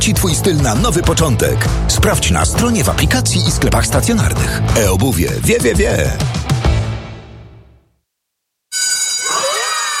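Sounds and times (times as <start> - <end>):
speech: 0.1 - 6.4
school bell ringing: 8.7 - 9.9.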